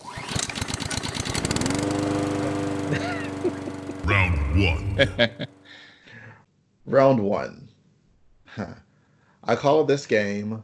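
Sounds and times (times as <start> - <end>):
small pull-start engine starting and idling: 0.0 - 3.9
laughter: 2.9 - 5.5
speech: 4.6 - 5.5, 6.9 - 7.6, 8.5 - 8.8, 9.5 - 10.6.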